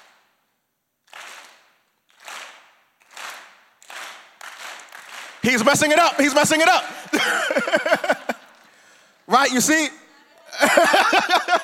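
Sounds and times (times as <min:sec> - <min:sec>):
audience clapping in rhythm: 0:00.0 - 0:00.3, 0:01.0 - 0:09.4
speech: 0:05.4 - 0:08.1, 0:09.3 - 0:10.0, 0:10.6 - 0:11.6
laughter: 0:06.2 - 0:08.7, 0:10.4 - 0:11.6.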